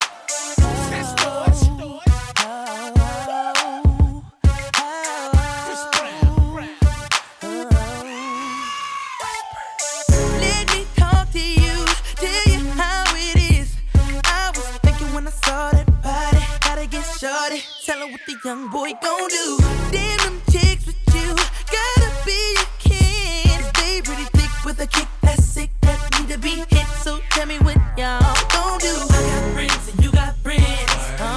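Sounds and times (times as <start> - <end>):
adult rapping solo: 0.0 - 31.3.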